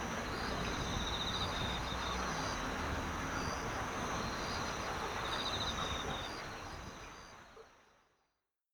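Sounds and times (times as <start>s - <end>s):
cricket chirping by Yeoeui-cheon Stream in Seoul: 0.0s - 6.3s.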